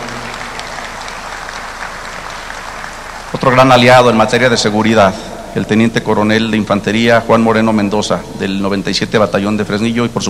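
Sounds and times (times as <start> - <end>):
audience applause: 0.0 - 5.3
speech: 3.4 - 10.2.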